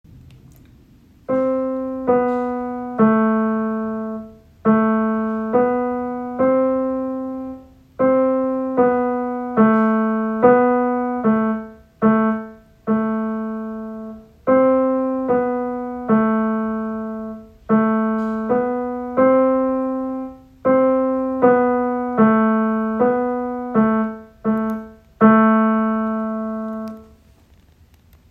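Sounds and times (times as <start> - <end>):
home-recorded student music recording: 0.1 - 28.2.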